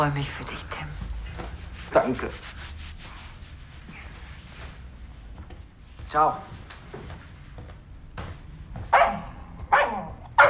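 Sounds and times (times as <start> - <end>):
speech: 0.0 - 1.0, 1.9 - 2.6, 6.1 - 6.6
dog barking: 8.9 - 10.4.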